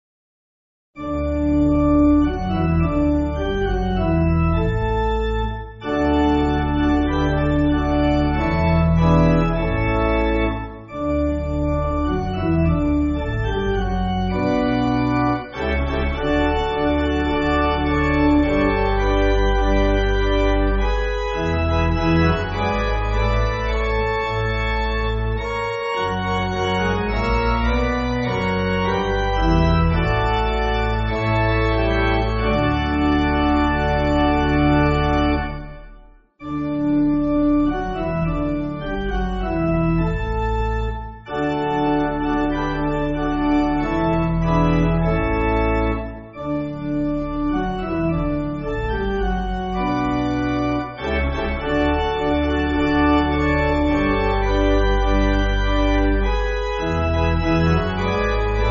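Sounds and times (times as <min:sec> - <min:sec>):
church pipe organ backing music: 0:01.0 - 0:58.6.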